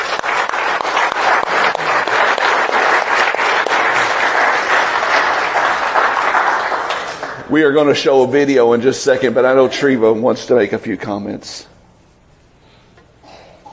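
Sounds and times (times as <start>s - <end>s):
audience applause: 0.0s - 7.5s
speech: 7.6s - 11.7s.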